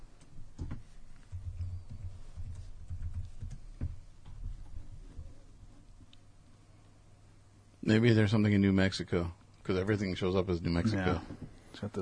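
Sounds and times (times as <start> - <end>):
low hum: 0.0 - 11.9
typing on a computer keyboard: 0.2 - 3.9
speech: 7.8 - 11.9.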